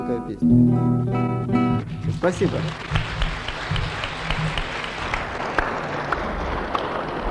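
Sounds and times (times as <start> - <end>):
speech: 0.2 - 3.0
audience applause: 2.2 - 7.2.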